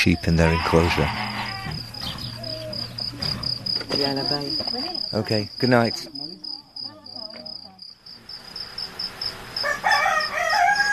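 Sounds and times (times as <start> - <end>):
speech: 0.0 - 1.2, 3.9 - 6.2
crickets chirring: 0.0 - 10.9
rooster crowing: 0.4 - 3.1, 9.5 - 10.9.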